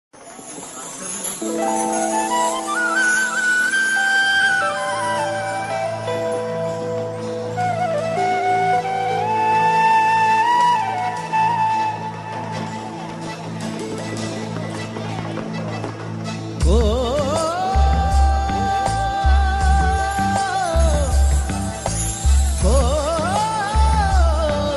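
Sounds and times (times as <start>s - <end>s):
background music tune: 0.2s - 24.7s.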